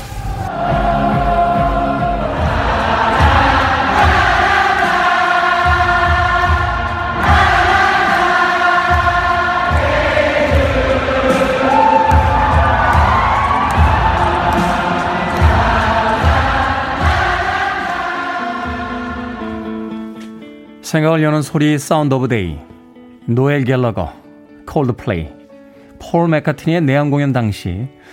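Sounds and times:
concert audience singing along: 0:00.0 - 0:20.5
speech: 0:20.9 - 0:25.4, 0:26.0 - 0:28.1.

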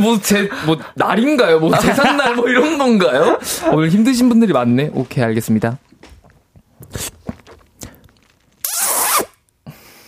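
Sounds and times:
speech: 0:00.0 - 0:05.8, 0:06.8 - 0:07.2
laughter: 0:01.6 - 0:03.8
person imitating kiss sounds: 0:08.6 - 0:09.4.

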